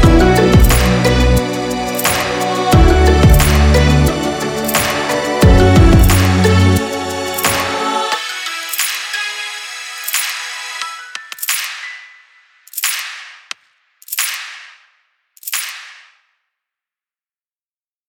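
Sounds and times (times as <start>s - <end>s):
R&B music: 0.0s - 13.6s.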